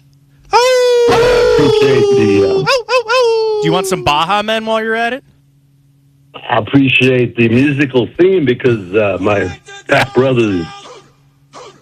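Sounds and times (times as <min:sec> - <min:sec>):
person howling like a wolf: 0:00.6 - 0:04.2
speech: 0:01.6 - 0:02.9, 0:03.6 - 0:05.3, 0:06.3 - 0:10.8.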